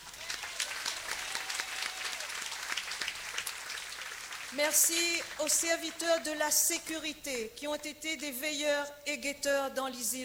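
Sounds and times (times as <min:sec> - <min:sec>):
audience applause: 0:00.0 - 0:05.5
speech: 0:04.5 - 0:10.2.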